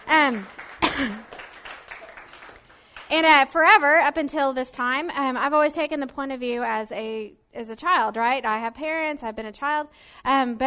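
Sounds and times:
audience clapping: 0:00.0 - 0:03.4
speech: 0:00.1 - 0:01.3, 0:03.1 - 0:10.6.

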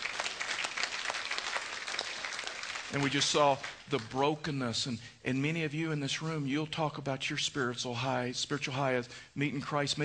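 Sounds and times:
audience clapping: 0:00.0 - 0:04.4
speech: 0:02.9 - 0:10.0.

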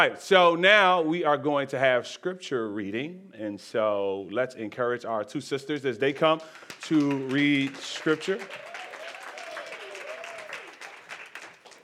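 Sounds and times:
speech: 0:00.0 - 0:08.7
audience clapping: 0:06.3 - 0:11.8.

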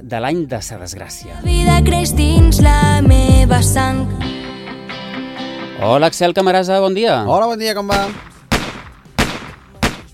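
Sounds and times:
speech: 0:00.0 - 0:04.4, 0:05.8 - 0:08.3
pistol gunshots: 0:07.9 - 0:10.1.

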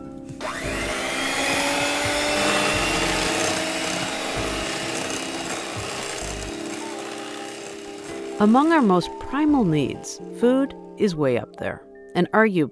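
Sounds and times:
electric mixer beating three large eggs at medium speed: 0:00.4 - 0:09.3
speech: 0:08.4 - 0:12.7.

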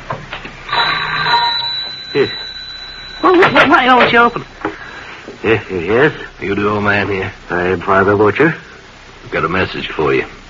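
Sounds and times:
doorbell ringing: 0:00.7 - 0:05.2
speech: 0:02.1 - 0:02.4, 0:03.2 - 0:04.5, 0:05.4 - 0:08.7, 0:09.3 - 0:10.4.

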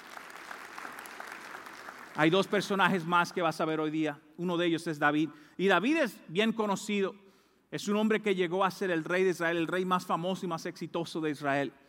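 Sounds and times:
audience applause: 0:00.0 - 0:02.6
speech: 0:02.2 - 0:11.8.

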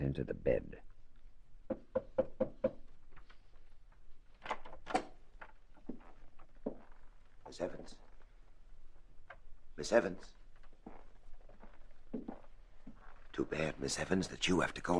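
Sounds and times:
speech: 0:00.1 - 0:00.9, 0:09.8 - 0:10.4, 0:13.4 - 0:14.9
knocking on a door: 0:01.7 - 0:02.8.

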